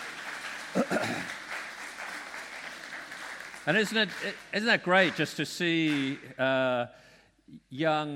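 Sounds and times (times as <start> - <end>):
audience applause: 0.0 - 6.2
speech: 3.7 - 8.1.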